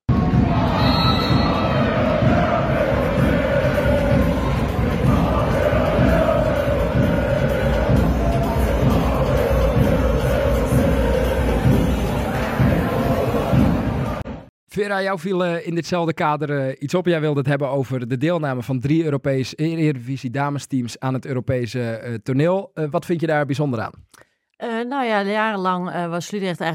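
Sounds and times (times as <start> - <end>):
football supporters singing and cheering in stands: 0.1 - 14.5
speech: 14.8 - 26.7.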